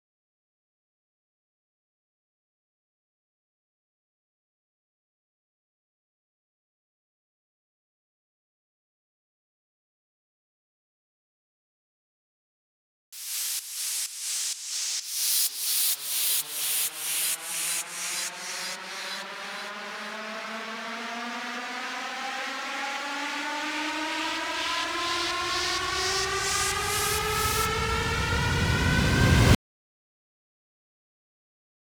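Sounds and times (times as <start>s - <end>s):
128 BPM full FX riser: 15.1s - 29.6s.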